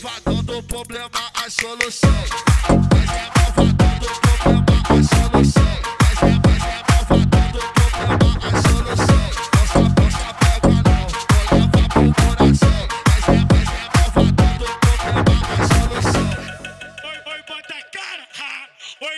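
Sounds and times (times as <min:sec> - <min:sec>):
funk drum beat: 0:01.6 - 0:16.4.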